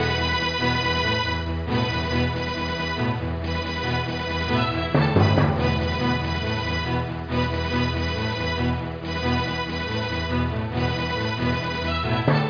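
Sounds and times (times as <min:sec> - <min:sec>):
orchestra: 0:00.0 - 0:12.4.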